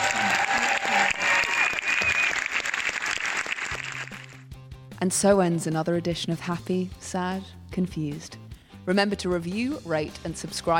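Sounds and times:
audience applauding a panel of actors: 0:00.0 - 0:04.4
speech: 0:05.0 - 0:10.7.

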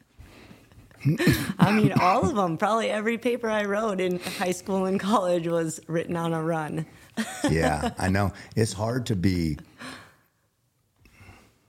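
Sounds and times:
person coughing: 0:01.0 - 0:02.5
speech: 0:01.0 - 0:09.9
laughter: 0:07.2 - 0:08.3.

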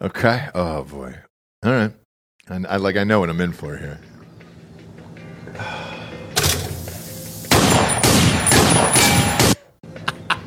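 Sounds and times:
speech: 0:00.0 - 0:04.1, 0:05.5 - 0:06.0
police officers firing wildly into a vehicle's cab in a film scene: 0:07.5 - 0:09.6.

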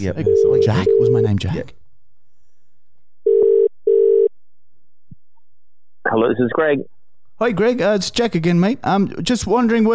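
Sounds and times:
speech: 0:00.0 - 0:01.8, 0:06.2 - 0:09.9
outgoing call telephone ringing tone: 0:00.2 - 0:01.4, 0:03.3 - 0:04.3.

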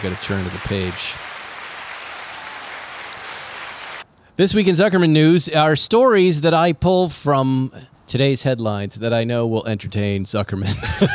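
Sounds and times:
speech: 0:00.0 - 0:01.3, 0:04.4 - 0:11.1
applause sound effect: 0:00.0 - 0:04.1
laughter: 0:10.6 - 0:11.1.

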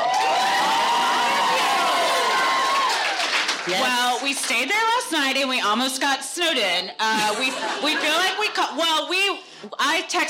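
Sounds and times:
audience applause: 0:00.0 - 0:04.5
speech: 0:03.7 - 0:10.2.

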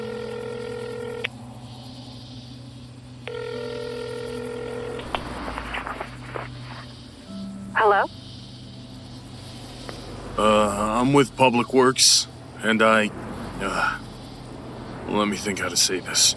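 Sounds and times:
telephone ringing tones: 0:00.0 - 0:01.3, 0:03.3 - 0:08.2
low hum: 0:00.0 - 0:16.3
rustling: 0:04.8 - 0:07.3
speech: 0:11.1 - 0:14.0, 0:15.1 - 0:16.3.

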